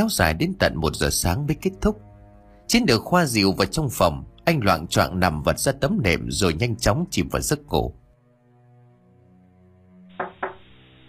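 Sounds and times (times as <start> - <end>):
speech: 0.0 - 2.1, 2.7 - 8.0
knocks on an earthen floor: 10.1 - 10.7.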